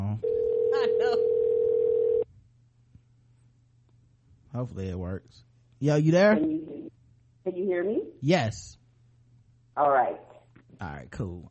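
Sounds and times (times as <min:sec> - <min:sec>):
telephone dial tone as a call is placed: 0:00.2 - 0:02.2
speech: 0:04.6 - 0:08.8, 0:09.8 - 0:11.5.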